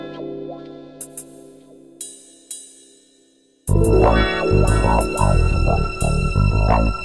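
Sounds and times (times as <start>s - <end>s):
breakbeat drums: 3.7s - 6.8s.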